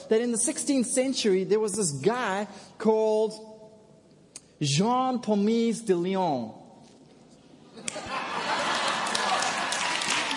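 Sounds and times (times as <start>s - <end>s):
speech: 0.1s - 3.5s, 4.6s - 6.6s
laughter: 7.7s - 10.2s
audience clapping: 7.9s - 10.3s.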